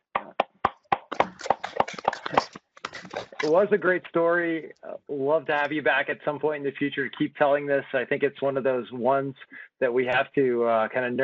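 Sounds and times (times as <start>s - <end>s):
audience round of applause: 0.2s - 3.6s
murmur of voices: 1.1s - 3.8s
speech: 2.3s - 2.6s, 3.4s - 11.2s.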